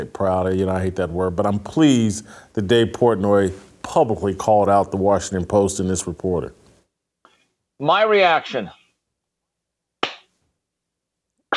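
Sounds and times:
speech: 0.0 - 6.6, 7.8 - 8.8
slow hand claps: 10.0 - 10.4.

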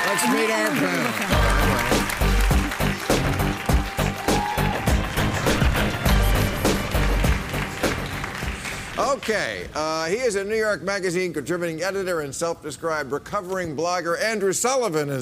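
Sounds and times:
studio audience applause: 0.0 - 9.7
speech: 0.2 - 1.9, 9.3 - 15.2.

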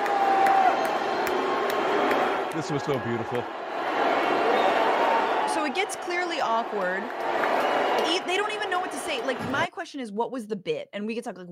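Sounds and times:
large crowd booing: 0.0 - 9.7
speech: 2.6 - 3.6, 5.6 - 11.5.

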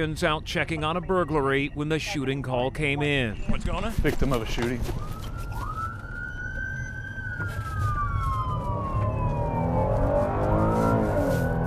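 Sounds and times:
speech: 0.0 - 5.2
moving car engine and road rumble: 0.0 - 11.6
police car siren wailing racing to scene: 4.4 - 11.6.

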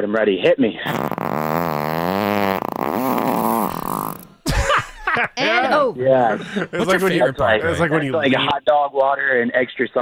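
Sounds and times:
speech: 0.0 - 1.6, 5.9 - 10.0
long buzzing fart: 0.9 - 4.9
laughter: 4.4 - 8.5.

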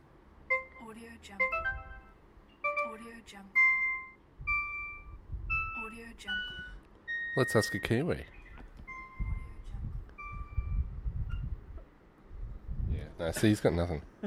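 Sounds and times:
low rumble: 0.0 - 7.2, 8.2 - 14.2
speech: 0.9 - 1.9, 3.0 - 3.7, 5.9 - 6.7, 7.4 - 8.4, 13.2 - 14.2
digital beeps: 3.6 - 9.6, 10.2 - 11.5.

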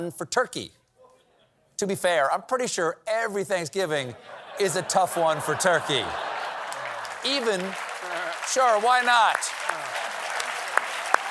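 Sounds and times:
speech: 0.0 - 0.8, 1.8 - 6.3, 7.2 - 7.8, 8.5 - 9.7
laughter: 4.2 - 10.8
applause: 5.9 - 11.3.

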